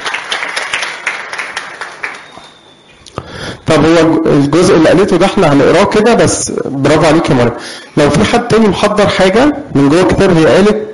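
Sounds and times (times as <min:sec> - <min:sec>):
audience applauding to encourage a speaker: 0:00.0 - 0:02.5
speech: 0:03.7 - 0:10.8.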